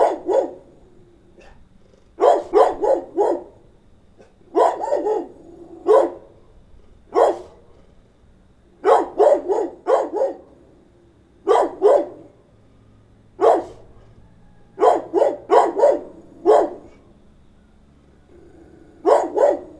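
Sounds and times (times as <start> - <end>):
medium-sized dog barking: 0.0 - 0.8, 1.4 - 1.6, 2.2 - 6.4, 7.1 - 7.7, 8.8 - 10.6, 11.4 - 12.4, 13.4 - 17.1, 19.0 - 19.7.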